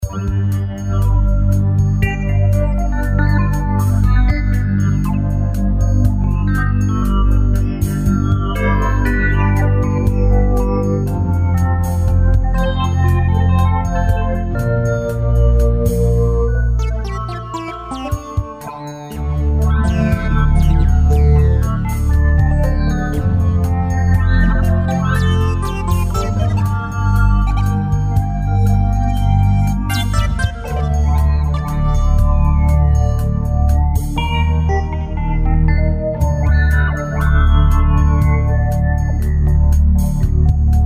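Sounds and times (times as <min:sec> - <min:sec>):
rhythm: 0:00.0 - 0:35.3, 0:36.1 - 0:40.8.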